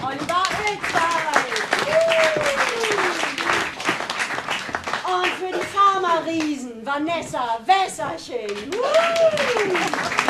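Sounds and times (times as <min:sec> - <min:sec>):
audience applause: 0:00.3 - 0:05.7, 0:08.6 - 0:10.2
speech: 0:06.3 - 0:10.2.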